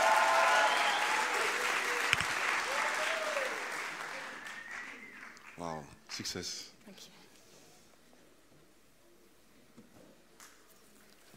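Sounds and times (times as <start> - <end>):
audience applause: 0.0 - 5.7
speech: 5.6 - 7.2.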